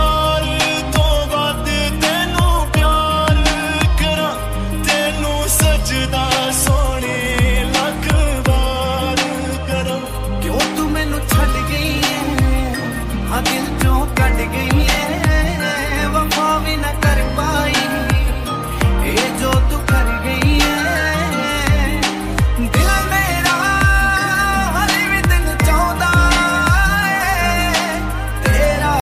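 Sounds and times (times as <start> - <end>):
remix ringtone: 0.0 - 29.0.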